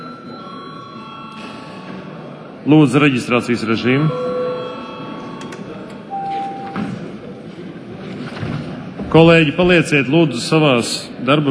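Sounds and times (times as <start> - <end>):
chamber bell rung for a break: 0.0 - 6.8
low murmur of noise: 0.0 - 11.4
speech: 2.6 - 4.3, 9.2 - 11.4.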